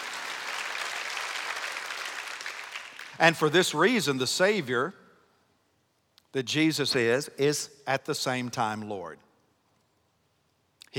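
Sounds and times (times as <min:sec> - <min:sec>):
audience clapping: 0:00.0 - 0:03.3
speech: 0:03.2 - 0:05.0, 0:06.3 - 0:09.3.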